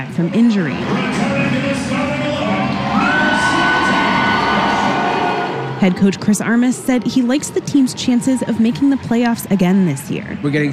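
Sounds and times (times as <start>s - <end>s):
speech: 0.0s - 2.1s, 5.8s - 10.7s
fans cheering at a Kansas City Current women's soccer match: 0.8s - 10.7s
whoops and high shouts from fans: 2.6s - 5.6s.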